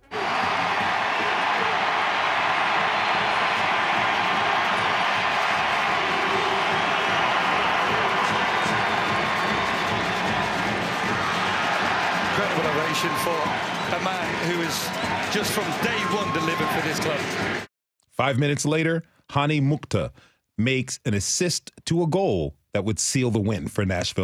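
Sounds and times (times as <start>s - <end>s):
stadium crowd cheering at soccer match: 0.0s - 17.7s
speech: 14.5s - 24.2s.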